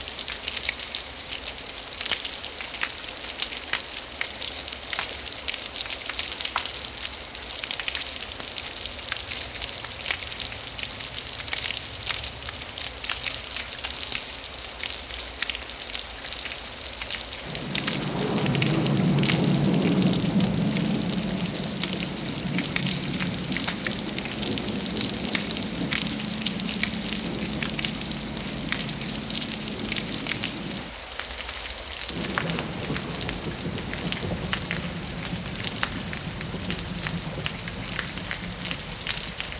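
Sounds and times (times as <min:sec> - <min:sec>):
light and heavy rain: 0:00.0 - 0:39.5
thunder: 0:17.4 - 0:30.9, 0:32.1 - 0:39.5.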